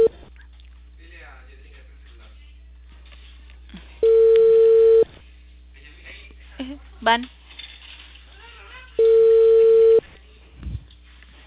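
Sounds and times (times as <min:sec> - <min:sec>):
telephone ringing unanswered: 0:04.0 - 0:05.1, 0:09.0 - 0:10.0
speech: 0:07.0 - 0:07.4.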